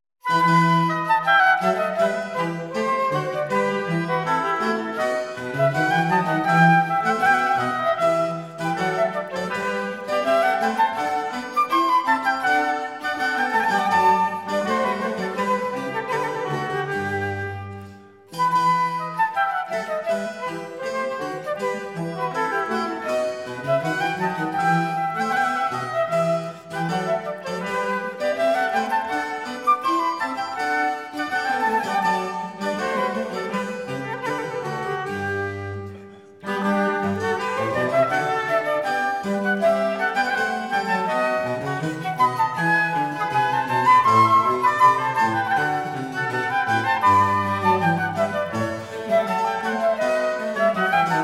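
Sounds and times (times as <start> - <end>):
trio sonata in E: 0.2 - 51.2.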